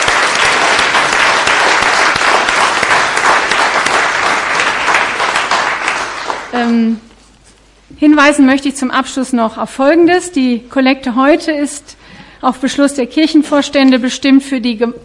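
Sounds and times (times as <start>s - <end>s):
applause: 0.0s - 6.6s
speech: 6.5s - 7.0s, 8.0s - 15.0s.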